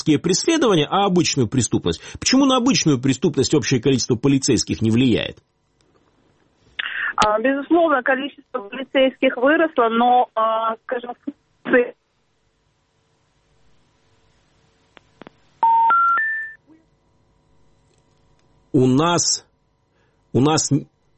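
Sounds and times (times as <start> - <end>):
speech: 0.0 - 5.5, 7.2 - 12.0, 18.8 - 19.5, 20.4 - 20.9
telephone dialing beeps while redialling a dropped call: 15.6 - 16.6.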